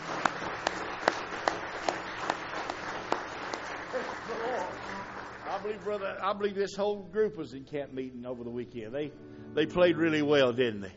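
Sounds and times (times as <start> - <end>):
audience hand clapping: 0.0 - 6.5
speech: 5.8 - 10.9.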